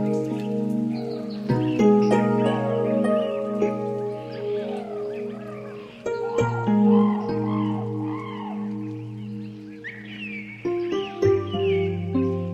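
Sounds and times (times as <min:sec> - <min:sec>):
waterbirds calling in a rain forest: 0:00.0 - 0:12.5.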